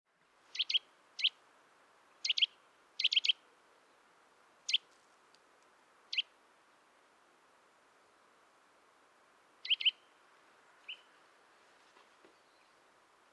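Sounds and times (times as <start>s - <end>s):
background hiss: 0.1s - 13.3s
Eurasian nuthatch sharp calls: 0.5s - 1.4s, 2.2s - 3.4s, 9.6s - 10.0s.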